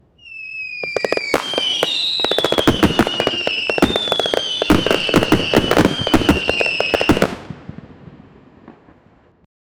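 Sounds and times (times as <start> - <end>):
exciting fire burst: 0.8 - 7.9.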